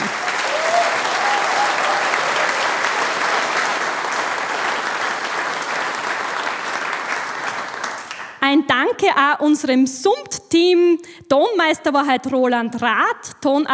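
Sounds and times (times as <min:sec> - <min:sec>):
audience applause: 0:00.0 - 0:08.4
speech: 0:09.0 - 0:13.7.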